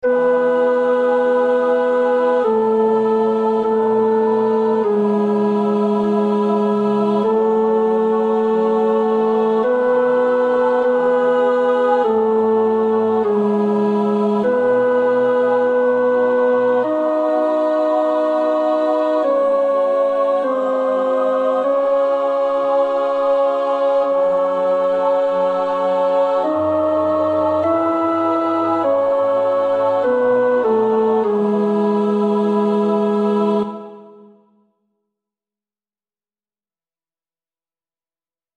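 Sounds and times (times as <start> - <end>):
tenor singing: 0.0 - 34.4.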